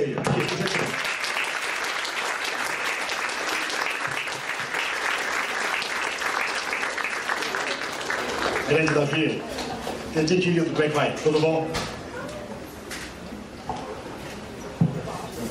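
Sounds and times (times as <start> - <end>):
audience applause: 0.0 - 9.5
speech: 8.7 - 12.0.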